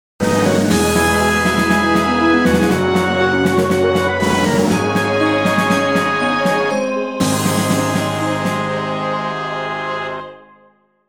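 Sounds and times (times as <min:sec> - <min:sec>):
stage start jingle: 0:00.2 - 0:10.4.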